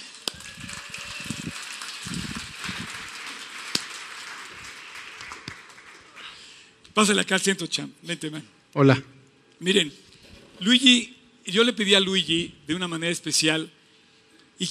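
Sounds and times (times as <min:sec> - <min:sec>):
crowd clapping: 0:00.0 - 0:06.6
speech: 0:07.0 - 0:10.0, 0:10.6 - 0:13.8.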